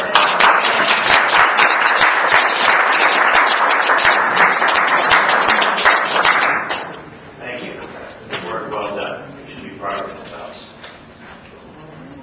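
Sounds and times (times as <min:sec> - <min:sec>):
crowd applauding: 0:00.0 - 0:07.0.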